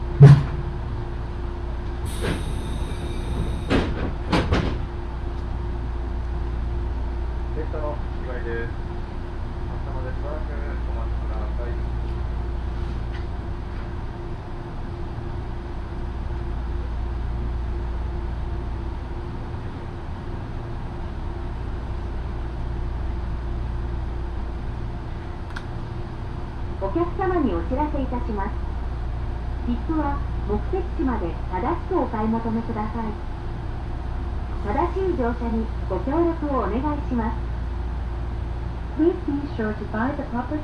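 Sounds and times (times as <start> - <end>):
Yoro Railway train rumble: 0.0 - 40.6
knocks and clatters: 3.7 - 4.8.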